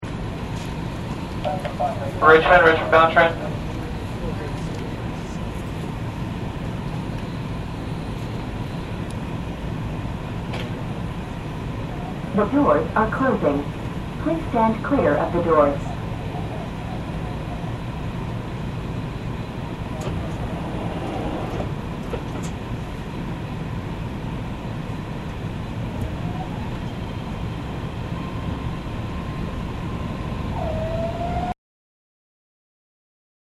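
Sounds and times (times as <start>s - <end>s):
subway train interior: 0.0s - 31.6s.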